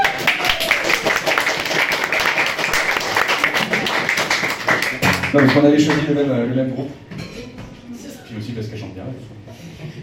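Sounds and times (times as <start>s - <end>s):
audience applauding: 0.0s - 6.2s
speech: 5.4s - 7.1s, 8.6s - 9.4s.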